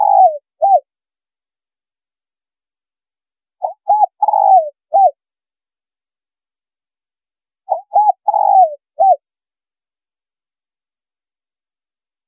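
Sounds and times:
spotted dove cooing: 0.0 - 0.8, 3.6 - 5.2, 7.7 - 9.2.

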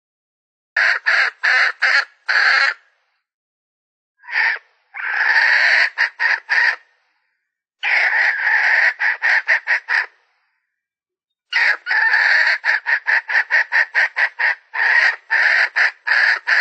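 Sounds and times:
Red junglefowl hen cackling: 0.8 - 2.8, 4.2 - 6.9, 7.8 - 10.2, 11.5 - 16.5.

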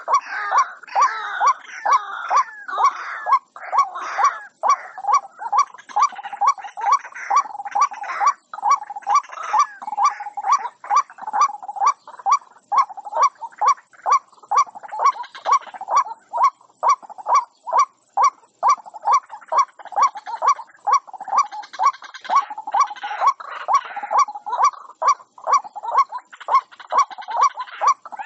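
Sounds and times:
White-breasted waterhen croaking notes: 0.0 - 28.2.

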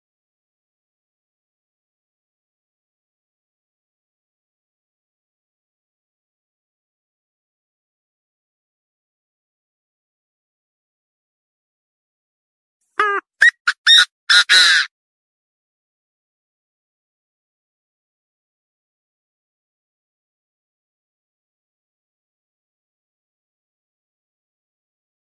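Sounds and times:
partridge calling: 13.0 - 14.9.

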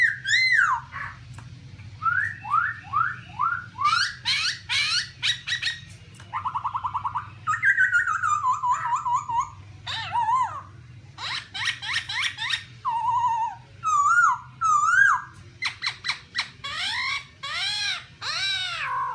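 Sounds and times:
black-throated laughingthrush whistled song: 0.0 - 1.2, 2.0 - 19.1.

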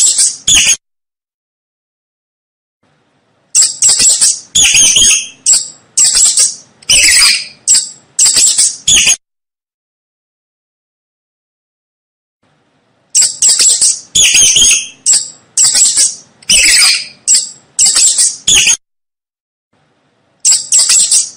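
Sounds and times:
mouse squeaking: 0.0 - 0.8, 3.5 - 9.2, 13.1 - 18.8, 20.4 - 21.3.

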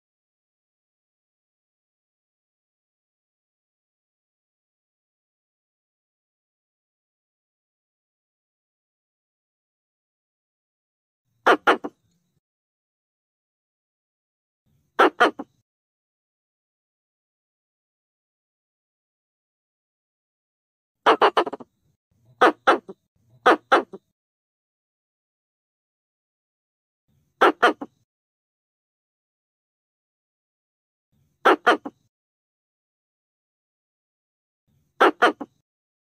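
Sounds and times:
Pallas's squirrel rasping chatter bursts: 11.5 - 12.0, 15.0 - 15.6, 21.1 - 21.7, 22.4 - 24.1, 27.4 - 28.0, 31.4 - 32.1, 35.0 - 35.6.

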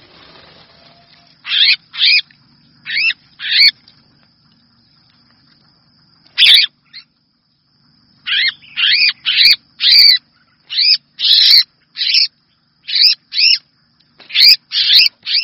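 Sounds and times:
red-whiskered bulbul distress call: 0.1 - 2.2, 2.8 - 3.8, 6.4 - 7.1, 8.2 - 13.6, 14.2 - 15.4.

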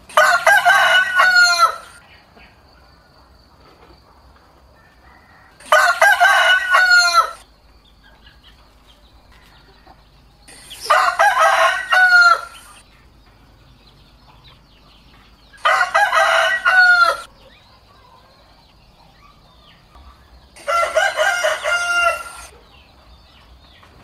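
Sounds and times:
rooster crowing: 0.1 - 2.0, 4.7 - 7.5, 9.2 - 12.8, 15.5 - 17.3, 20.5 - 22.5.

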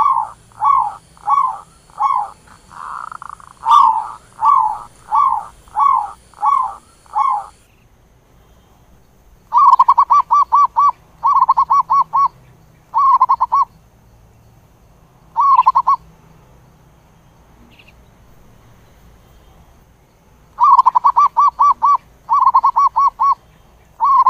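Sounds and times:
zebra dove cooing: 0.0 - 7.6, 9.5 - 13.7, 15.4 - 16.0, 20.6 - 23.4, 24.0 - 24.2.

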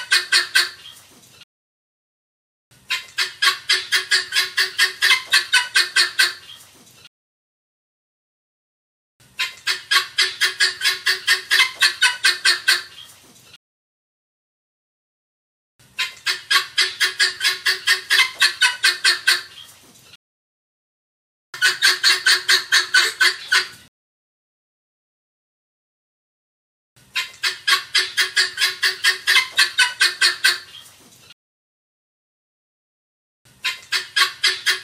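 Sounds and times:
helmeted guineafowl cackling: 0.0 - 1.1, 2.8 - 6.7, 9.3 - 13.2, 15.9 - 19.8, 21.6 - 23.9, 27.1 - 31.0, 33.6 - 34.8.

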